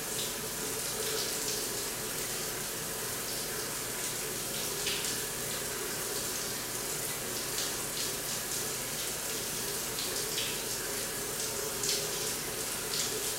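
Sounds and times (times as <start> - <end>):
locker room shower running: 0.0 - 13.3.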